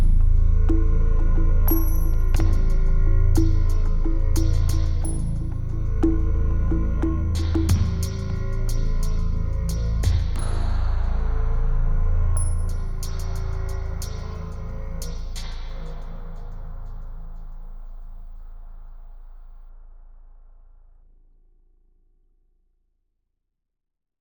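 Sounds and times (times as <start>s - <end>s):
weird world music: 0.0s - 17.8s.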